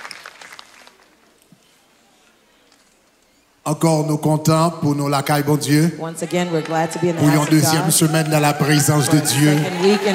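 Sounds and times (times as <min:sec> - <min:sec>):
audience applause: 0:00.0 - 0:01.2, 0:06.3 - 0:10.1
speech: 0:03.7 - 0:10.1.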